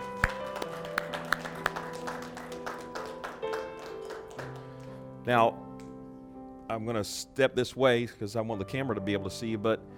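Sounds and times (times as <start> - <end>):
sustained tones of music: 0.0 - 4.5
audience hand clapping: 0.0 - 5.0
speech: 5.3 - 5.6, 6.7 - 9.9.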